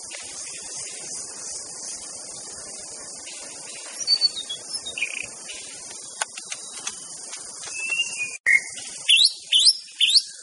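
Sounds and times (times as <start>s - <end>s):
White-rumped shama whistled song: 3.9s - 5.6s, 7.6s - 10.4s.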